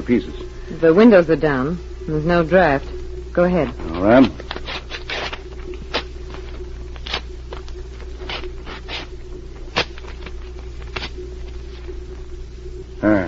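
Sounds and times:
low steady hum: 0.0 - 13.2
speech: 0.1 - 4.5
papers being torn into small pieces at a table: 3.8 - 11.2.

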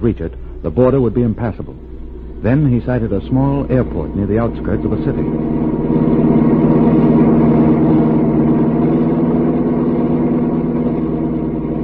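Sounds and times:
speech: 0.0 - 6.4
car engine running: 0.0 - 11.8.

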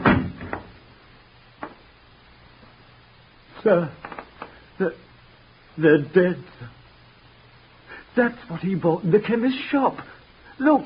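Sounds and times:
door shutting: 0.0 - 0.8
speech: 3.6 - 4.1, 4.8 - 5.1, 5.8 - 6.8, 8.2 - 10.8.

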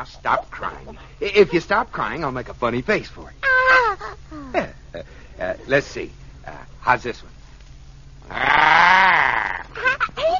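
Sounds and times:
speech: 0.0 - 7.4, 8.3 - 10.3
person imitating a pig squeal: 3.4 - 4.6, 8.3 - 10.0.

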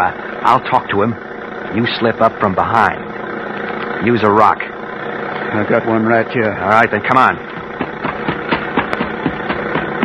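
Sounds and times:
speech: 0.0 - 3.0, 4.0 - 4.7, 5.5 - 7.5
car engine idling: 0.0 - 10.0.

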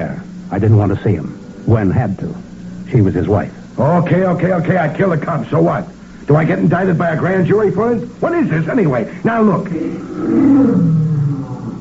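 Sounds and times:
speech: 0.5 - 11.0
lion roaring: 9.8 - 11.7.

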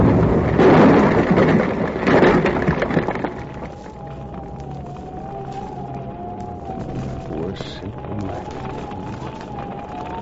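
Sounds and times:
dynamite explosion: 0.0 - 4.0.

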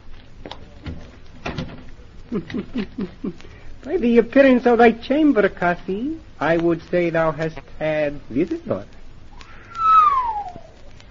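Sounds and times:
door closing: 0.8 - 1.9
laughter: 2.3 - 3.4
speech: 2.3 - 9.0.

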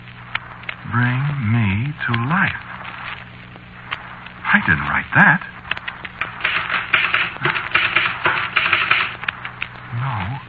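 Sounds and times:
speech: 0.9 - 2.7, 4.6 - 5.6
typewriter typing: 6.2 - 9.4.

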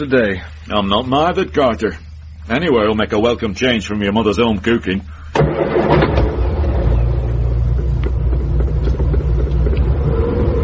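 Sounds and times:
speech: 0.0 - 6.1
car engine starting and pulling away: 5.4 - 10.6.

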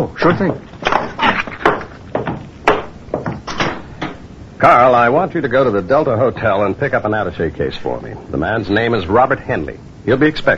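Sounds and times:
speech: 0.0 - 0.7, 4.6 - 10.5
door being closed: 0.4 - 4.2.

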